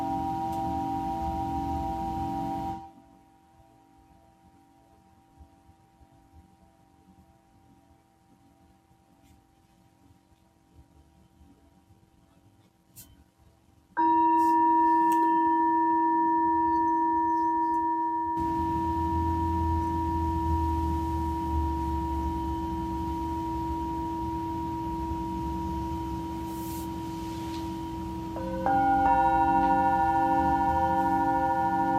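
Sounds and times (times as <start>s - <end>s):
Tibetan singing bowl humming at a sound healing live: 0.0s - 2.9s, 14.0s - 31.9s.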